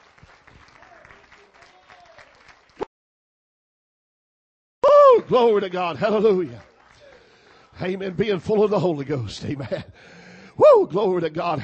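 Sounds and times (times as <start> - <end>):
crowd clapping hands in praise: 0.0 - 2.9, 5.1 - 9.1
speech: 5.3 - 6.7, 7.8 - 11.6.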